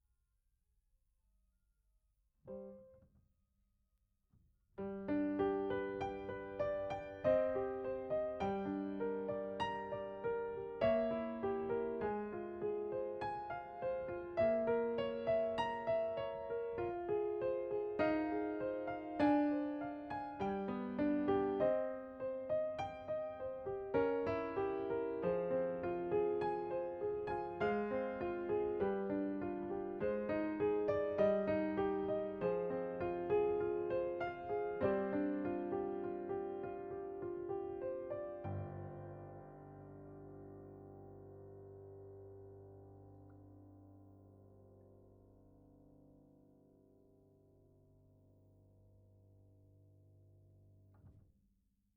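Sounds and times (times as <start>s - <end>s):
piano note A: 4.8s - 45.1s.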